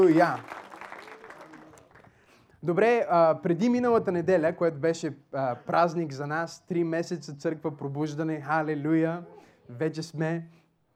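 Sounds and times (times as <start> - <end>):
speech: 0.0 - 0.6, 2.6 - 10.6
audience applause: 0.0 - 2.1.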